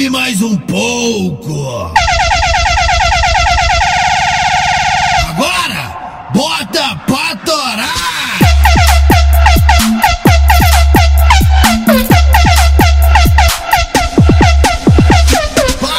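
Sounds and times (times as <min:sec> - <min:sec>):
speech: 0:00.0 - 0:02.2, 0:06.3 - 0:08.9
Volvo truck air horn: 0:02.0 - 0:05.2, 0:08.4 - 0:15.9.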